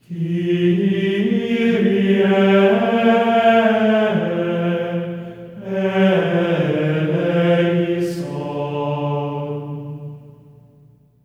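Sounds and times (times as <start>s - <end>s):
voices singing a Kyrie in G4: 0.0s - 10.4s.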